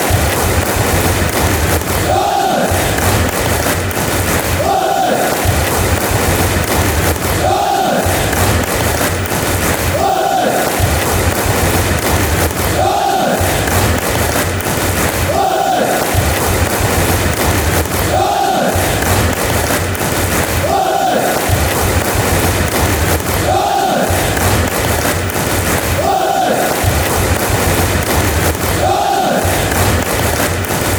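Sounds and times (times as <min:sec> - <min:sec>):
Huddersfield fans clapping: 0:00.0 - 0:30.9.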